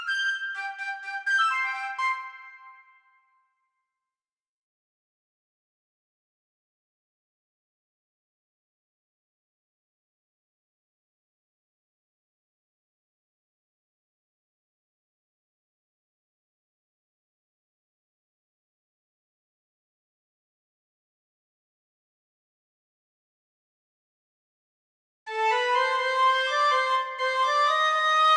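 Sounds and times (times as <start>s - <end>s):
flute: 0.0s - 3.4s, 25.3s - 28.3s.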